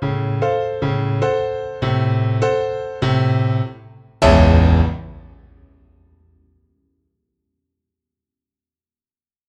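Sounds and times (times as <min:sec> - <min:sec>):
swing piano: 0:00.0 - 0:05.6.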